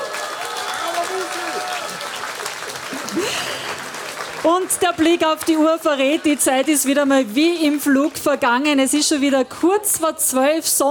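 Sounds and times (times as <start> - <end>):
audience applause: 0.0 - 8.4
speech: 4.4 - 10.8.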